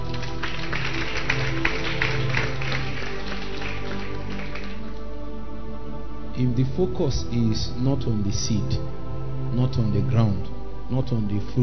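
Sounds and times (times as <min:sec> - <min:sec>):
audience clapping: 0:00.0 - 0:05.2
speech: 0:06.4 - 0:11.6.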